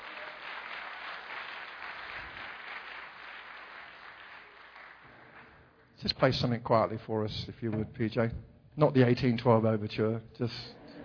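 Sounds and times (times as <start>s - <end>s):
round of applause: 0.0s - 5.8s
speech: 6.0s - 10.8s.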